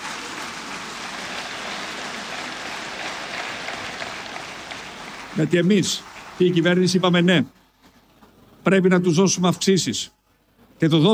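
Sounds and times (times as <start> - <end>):
crowd applause: 0.0 - 7.6
speech: 5.4 - 7.6, 8.6 - 10.2, 10.8 - 11.1.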